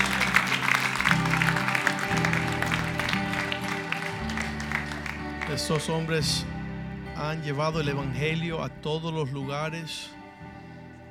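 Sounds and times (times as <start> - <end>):
audience applause: 0.0 - 6.0
speech: 5.6 - 6.5, 7.2 - 10.2.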